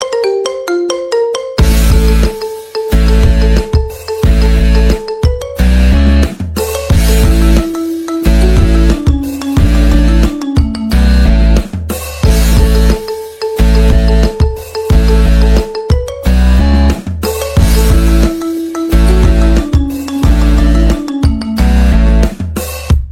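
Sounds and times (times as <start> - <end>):
marimba: 0.0 - 22.3.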